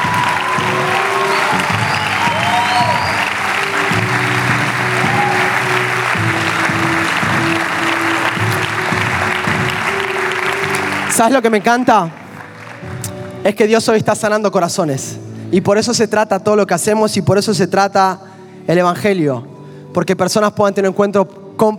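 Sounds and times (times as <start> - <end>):
audience applause: 0.0 - 13.4
speech: 11.2 - 12.2, 13.4 - 21.7.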